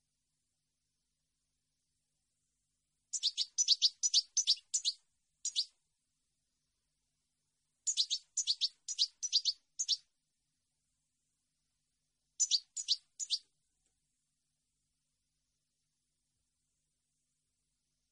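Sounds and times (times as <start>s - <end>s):
European goldfinch double chirps: 3.1s - 5.7s, 7.9s - 10.0s, 12.4s - 13.4s.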